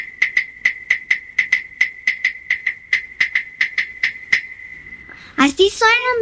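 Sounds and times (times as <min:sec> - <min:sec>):
claves knocked together: 0:00.0 - 0:04.6
speech: 0:05.5 - 0:06.1.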